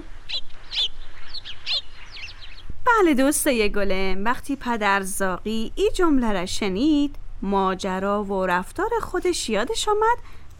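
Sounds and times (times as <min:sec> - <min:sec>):
sparrows chirping: 0:00.0 - 0:03.4
speech: 0:02.9 - 0:10.5.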